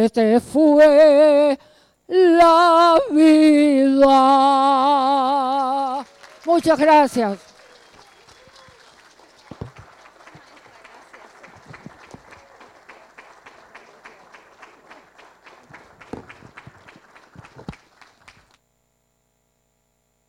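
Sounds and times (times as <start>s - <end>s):
speech: 0.0s - 7.5s
audience applause: 4.8s - 18.6s.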